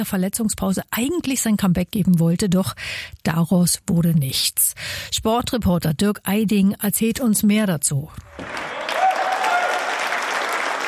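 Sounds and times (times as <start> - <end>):
speech: 0.0 - 8.9
applause in the Sporthalle Robert-Koch-Straße: 8.3 - 10.8.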